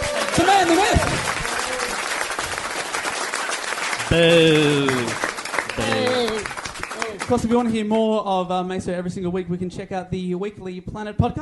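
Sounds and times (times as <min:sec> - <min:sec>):
round of applause: 0:00.0 - 0:07.8
speech: 0:04.1 - 0:05.2, 0:07.3 - 0:11.4.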